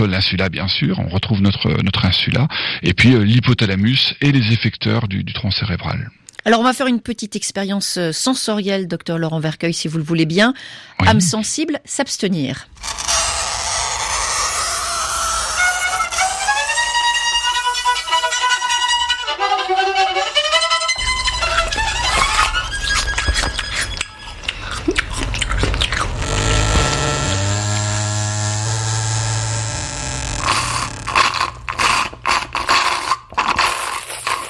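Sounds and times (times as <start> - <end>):
speech: 0.0 - 13.0
creaking door: 12.7 - 18.1, 21.0 - 33.3
chalk screeching on board: 12.8 - 18.2, 25.4 - 34.4
beginner's scratchy wavering violin: 12.8 - 24.6, 25.4 - 32.8
wet clicking chewing: 22.9 - 26.9, 30.4 - 34.4.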